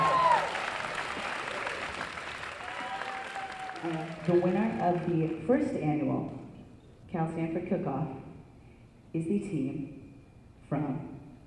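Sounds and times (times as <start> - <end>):
audience applause: 0.0 - 5.4
speech: 3.8 - 6.4, 7.1 - 8.2, 9.1 - 10.0, 10.7 - 11.1.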